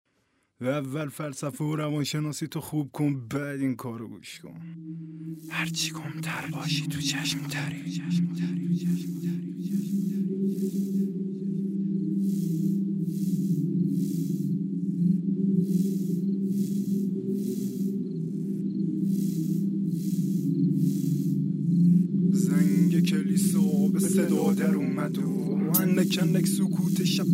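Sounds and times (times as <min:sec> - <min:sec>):
speech: 0:00.6 - 0:11.0, 0:23.1 - 0:27.3
low humming drone: 0:04.7 - 0:27.3
crickets chirping at night: 0:04.8 - 0:27.3.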